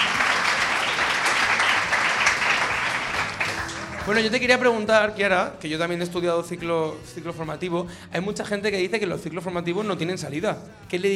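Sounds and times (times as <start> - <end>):
crowd applauding: 0.0 - 4.7
speech: 4.0 - 11.1.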